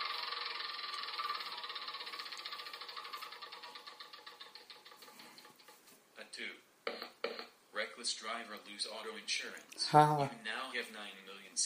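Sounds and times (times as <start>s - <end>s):
spinner wheel spinning in a Game of Life video game: 0.0s - 5.8s
speech: 8.0s - 11.6s.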